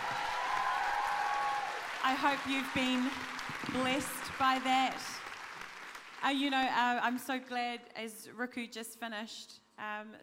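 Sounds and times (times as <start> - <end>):
crowd round of applause: 0.0 - 6.2
speech: 2.0 - 5.2, 6.2 - 10.2.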